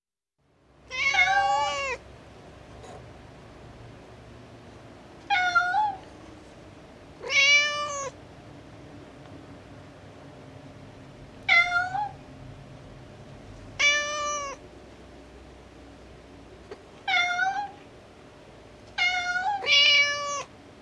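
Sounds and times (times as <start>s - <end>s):
cat meowing: 0.9s - 2.0s, 5.3s - 6.0s, 7.2s - 8.2s, 11.5s - 12.2s, 13.8s - 14.6s, 17.0s - 17.8s, 19.0s - 20.5s.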